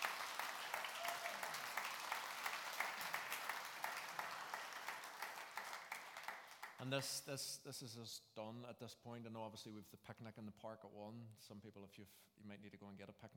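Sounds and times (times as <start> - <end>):
audience round of applause: 0.0 - 6.8
speech: 6.8 - 13.3.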